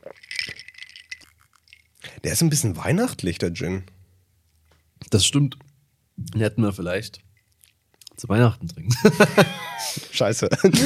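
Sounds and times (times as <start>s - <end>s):
ice cubes clinking in a glass: 0.0s - 2.0s
speech: 2.2s - 4.0s, 5.1s - 7.3s, 8.2s - 10.8s
laughter: 8.9s - 10.8s.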